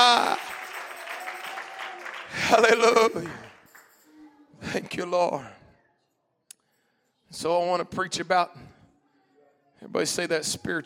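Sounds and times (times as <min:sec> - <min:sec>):
church congregation clapping hands: 0:00.0 - 0:04.1
speech: 0:02.5 - 0:03.5, 0:04.7 - 0:05.6, 0:07.3 - 0:08.7, 0:09.8 - 0:10.8.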